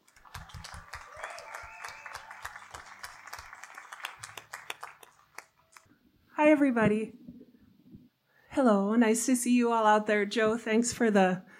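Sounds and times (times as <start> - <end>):
audience applause greeting a writer at a live reading: 0.0 - 5.8
speech: 6.4 - 7.2, 8.6 - 11.5.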